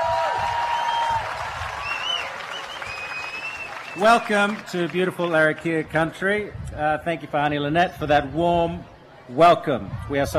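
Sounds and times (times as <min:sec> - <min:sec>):
audience applause for the Red Flag dancers in Darwin: 0:00.0 - 0:05.9
speech: 0:04.0 - 0:10.3.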